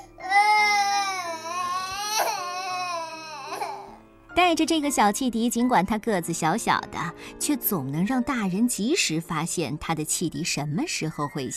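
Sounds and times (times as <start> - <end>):
baby crying: 0.0 - 4.0
speech: 4.5 - 11.5.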